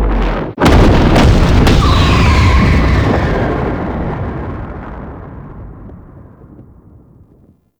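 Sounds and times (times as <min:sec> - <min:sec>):
heal cannon effect: 0:00.1 - 0:05.8.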